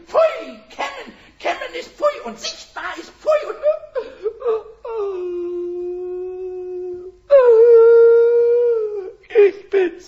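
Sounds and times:
speech: 0:02.3 - 0:02.6
person whimpering and crying: 0:03.5 - 0:09.5.

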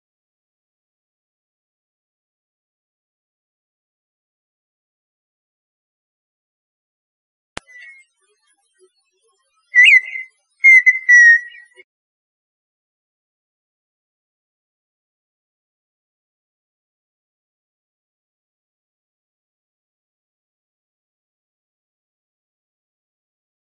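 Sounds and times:
partridge song of clicks and whistles: 0:07.6 - 0:08.1, 0:09.7 - 0:11.8.

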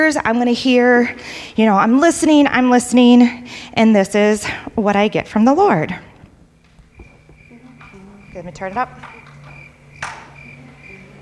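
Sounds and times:
speech: 0:00.0 - 0:06.1, 0:08.4 - 0:09.2
crickets chirping: 0:06.8 - 0:11.2.

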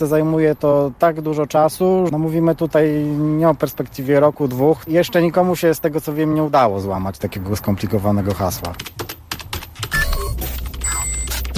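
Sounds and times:
speech: 0:00.0 - 0:09.2
typing on a computer keyboard: 0:07.9 - 0:11.5
brief electronic tones: 0:09.9 - 0:11.5.

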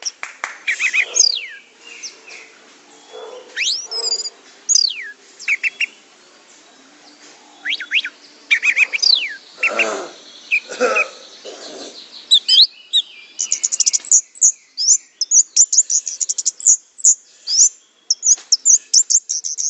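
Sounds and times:
orange-headed thrush singing: 0:00.0 - 0:19.6.

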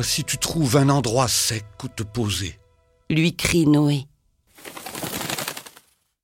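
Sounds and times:
speech: 0:00.0 - 0:04.8
dove wings flapping as it is released from a window: 0:04.5 - 0:06.1.

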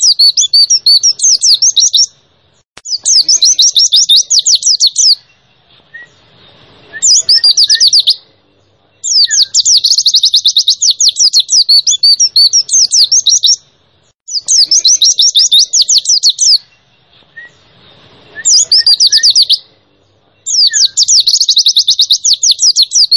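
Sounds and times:
white-eye chirping song: 0:00.0 - 0:23.1.

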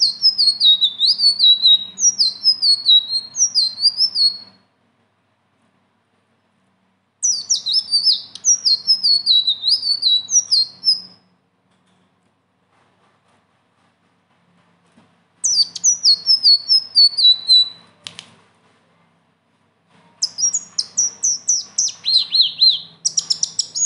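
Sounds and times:
leafbird singing: 0:00.0 - 0:04.6, 0:07.2 - 0:11.2, 0:15.4 - 0:17.9, 0:20.2 - 0:23.8.

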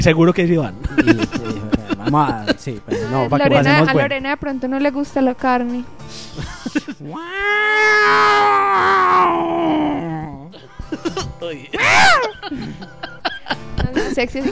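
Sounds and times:
speech: 0:00.0 - 0:10.1, 0:11.1 - 0:14.5
laughter: 0:00.8 - 0:03.4, 0:06.4 - 0:07.2, 0:10.5 - 0:14.5
person imitating a cat meowing: 0:07.1 - 0:10.5.

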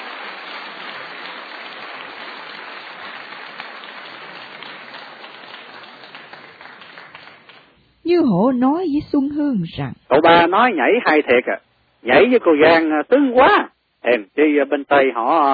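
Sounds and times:
guests applauding after a dance: 0:00.0 - 0:07.8
speech: 0:08.1 - 0:15.5.

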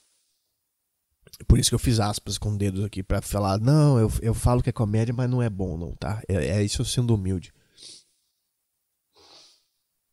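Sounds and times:
speech: 0:01.4 - 0:08.0
sniffing mucus back into the nose: 0:07.8 - 0:08.1, 0:09.1 - 0:09.7.

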